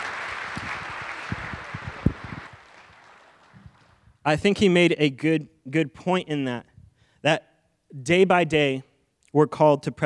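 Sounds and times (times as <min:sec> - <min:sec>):
audience applause: 0:00.0 - 0:04.0
speech: 0:04.2 - 0:10.0.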